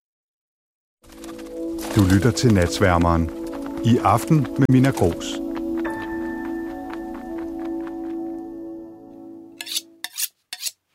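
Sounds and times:
sustained musical tone: 1.2 - 10.0
speech: 2.0 - 5.4
knife being sharpened on a steel: 9.6 - 10.9.

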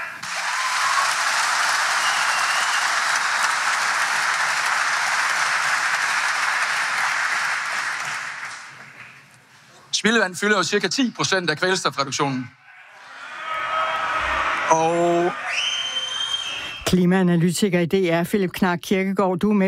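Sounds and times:
audience cheering and applauding at public meeting: 0.2 - 9.3, 12.9 - 16.7
speech: 10.0 - 12.6, 14.7 - 15.7, 16.9 - 19.6.

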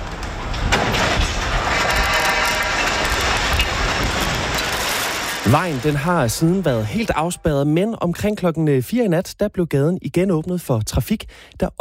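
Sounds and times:
sharp bangs of collapsing scaffold: 0.0 - 7.3
speech: 5.5 - 11.8.

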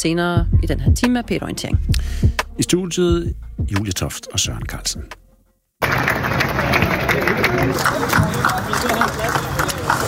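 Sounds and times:
speech: 0.0 - 5.2, 6.4 - 9.6
crowd clapping at outdoor demonstration: 5.8 - 10.0
murmuring voices: 5.8 - 10.0.

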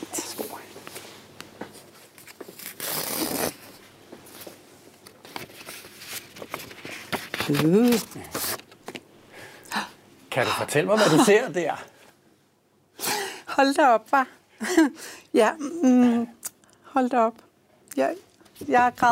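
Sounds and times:
small envelope paper rustling and tearing: 2.1 - 3.8, 5.2 - 8.8
speech: 7.5 - 8.4, 10.4 - 11.9, 13.6 - 16.4, 17.0 - 19.1.

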